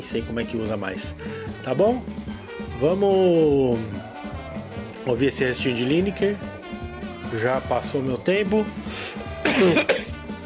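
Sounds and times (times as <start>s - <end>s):
speech: 0.0s - 4.1s, 5.0s - 6.5s, 7.3s - 10.0s
harsh cough with throaty rasp: 9.4s - 10.2s.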